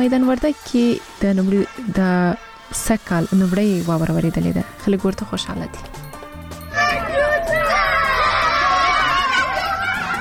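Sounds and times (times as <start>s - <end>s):
speech: 0.0s - 6.0s
children shouting and laughing playing in snow in Maidan Wardak province: 6.7s - 10.1s.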